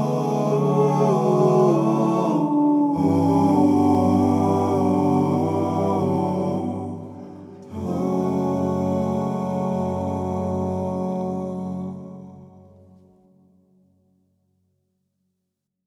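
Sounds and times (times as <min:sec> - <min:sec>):
fado singing: 0:00.0 - 0:12.6.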